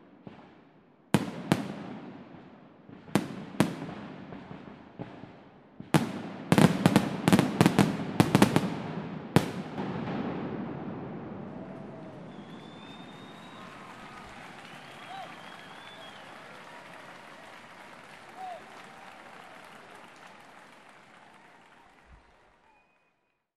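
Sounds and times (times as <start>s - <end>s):
fireworks: 0.0s - 17.6s.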